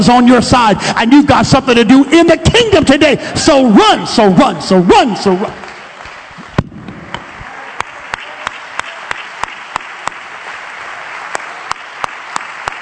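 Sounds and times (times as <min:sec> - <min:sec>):
speech: 0:00.0 - 0:05.6
audience clapping hands: 0:05.5 - 0:12.8.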